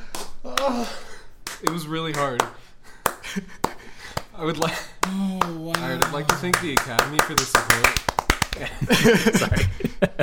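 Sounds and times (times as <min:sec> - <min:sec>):
slow hand clapping: 0:00.0 - 0:08.8
speech: 0:00.6 - 0:02.7, 0:03.4 - 0:03.7, 0:04.4 - 0:10.2
laughter: 0:08.4 - 0:10.2.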